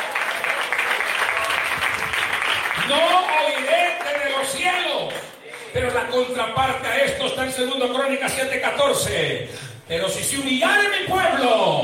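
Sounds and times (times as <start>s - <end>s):
audience applause: 0.0s - 5.7s
speech: 2.9s - 11.8s.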